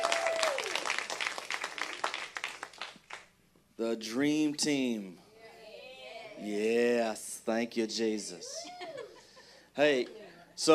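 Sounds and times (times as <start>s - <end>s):
audience applause for worship leaders at a church service: 0.0s - 3.2s
speech: 3.8s - 5.2s, 6.4s - 8.7s, 9.8s - 10.7s.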